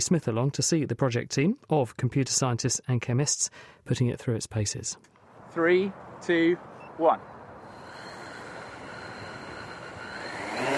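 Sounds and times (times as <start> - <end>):
speech: 0.0 - 7.3
six-rotor hexacopter taking off, rotors whirring: 7.5 - 10.7.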